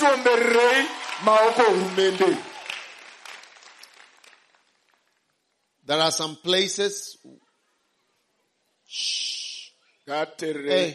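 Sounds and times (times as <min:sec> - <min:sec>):
speech: 0:00.0 - 0:02.5, 0:05.9 - 0:07.4, 0:08.9 - 0:09.4, 0:10.1 - 0:10.9
audience clapping: 0:00.0 - 0:05.4.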